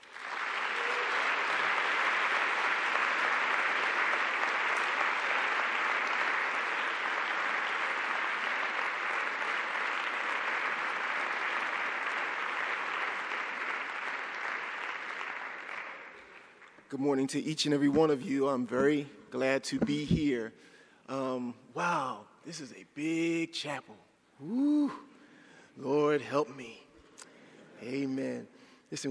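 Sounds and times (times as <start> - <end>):
audience applause welcoming a speaker to a chapel lecture: 0.0 - 16.8
speech: 16.9 - 25.1, 25.8 - 26.8, 27.8 - 29.0.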